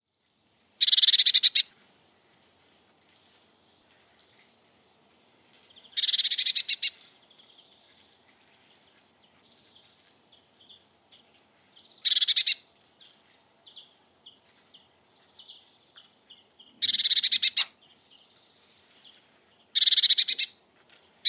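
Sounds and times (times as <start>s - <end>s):
Eurasian blue tit rattling churr: 0.8s - 1.7s, 5.9s - 7.0s, 11.9s - 13.9s, 15.5s - 17.9s, 19.8s - 20.6s.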